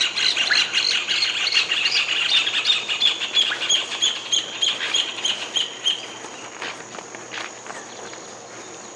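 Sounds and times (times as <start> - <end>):
bird singing: 0.0 - 6.8, 7.6 - 8.9.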